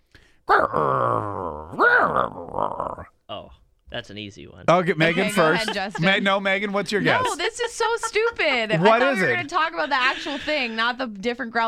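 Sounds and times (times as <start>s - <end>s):
person imitating dog growl: 0.5s - 3.5s
speech: 0.6s - 1.0s, 4.0s - 11.6s
laughter: 4.8s - 11.0s.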